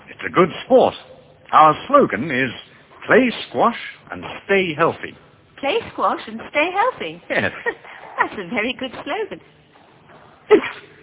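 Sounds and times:
speech: 0.2 - 9.6, 10.5 - 10.9
sneeze: 10.5 - 11.0.

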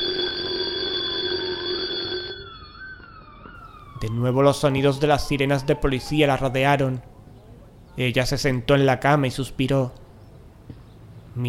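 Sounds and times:
alarm clock ringing: 0.0 - 4.0
speech: 4.0 - 7.1, 8.0 - 10.0.

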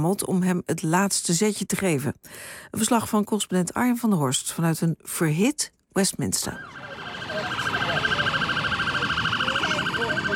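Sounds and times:
speech: 0.0 - 7.6
police car siren: 6.4 - 10.3
street traffic rumble: 6.5 - 10.3.

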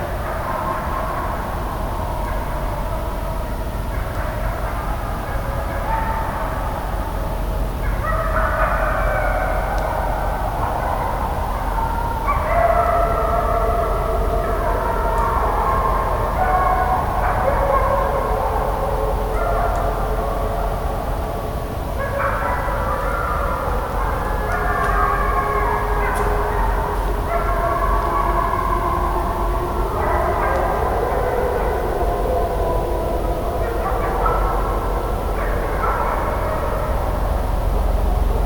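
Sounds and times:
gray wolves howling: 0.0 - 38.4.

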